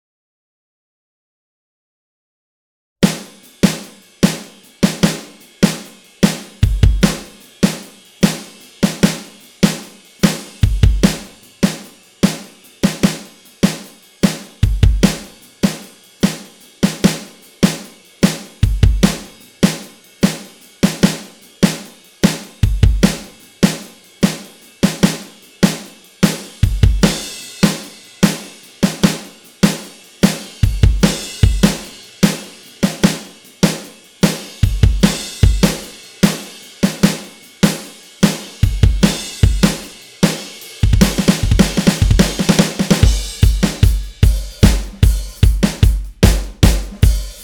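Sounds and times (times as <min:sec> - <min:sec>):
drums: 0:03.0 - 0:47.4.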